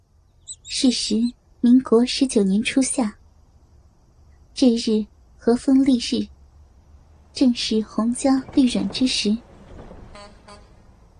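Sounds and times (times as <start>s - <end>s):
speech: 0.8s - 3.2s, 4.6s - 6.4s, 7.4s - 9.4s
car horn honking: 10.1s - 10.8s.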